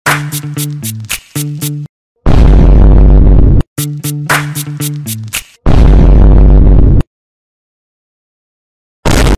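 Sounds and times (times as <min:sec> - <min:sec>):
Vine boom: 0:02.3 - 0:03.6, 0:05.7 - 0:07.0.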